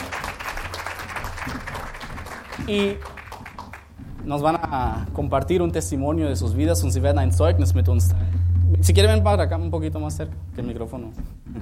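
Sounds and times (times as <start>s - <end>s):
congregation applause at a baptism service: 0.0s - 3.9s
speech: 2.6s - 3.1s, 4.2s - 8.2s, 8.8s - 11.6s.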